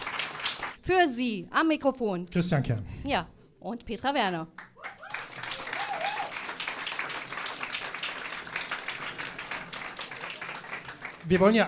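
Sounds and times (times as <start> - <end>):
audience clapping: 0.0 - 0.8, 4.6 - 11.6
speech: 0.9 - 4.7, 11.3 - 11.6
audience cheering: 4.8 - 11.4.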